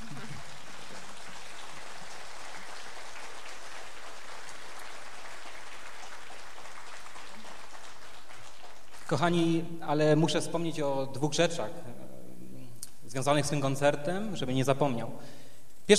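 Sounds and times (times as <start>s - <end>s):
audience applause: 0.0s - 9.2s
speech: 9.1s - 12.0s, 13.1s - 15.9s.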